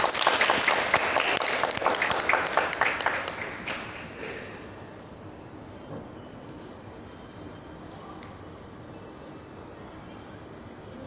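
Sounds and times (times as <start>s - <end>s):
audience applause: 0.0s - 4.4s.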